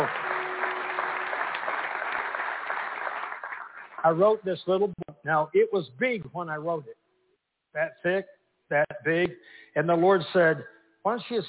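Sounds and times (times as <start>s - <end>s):
audience applause: 0.0s - 4.4s
speech: 4.0s - 7.0s, 7.7s - 11.4s.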